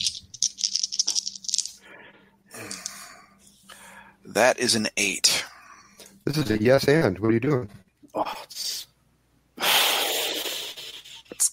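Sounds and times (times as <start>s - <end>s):
dice rattling and rolling: 0.0s - 1.8s
speech: 4.3s - 5.5s, 6.3s - 8.3s.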